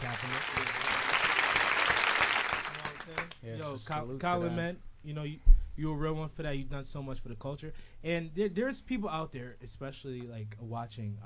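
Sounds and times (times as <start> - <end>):
crowd applauding: 0.0 - 3.5
speech: 3.7 - 11.2.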